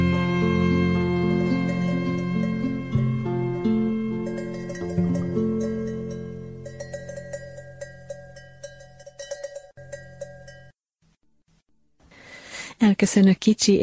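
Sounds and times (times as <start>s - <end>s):
distant sheep bell ringing: 0.1s - 10.7s
speech: 13.0s - 13.7s.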